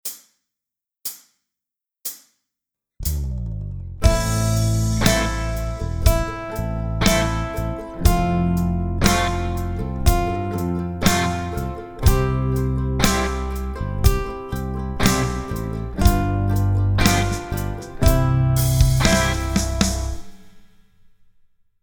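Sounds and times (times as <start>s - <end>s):
funk music: 3.0s - 20.4s.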